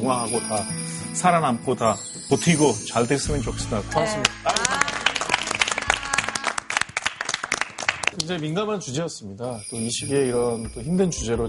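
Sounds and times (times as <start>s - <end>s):
speech: 0.0s - 4.6s, 8.2s - 11.4s
audience applause: 4.2s - 8.3s.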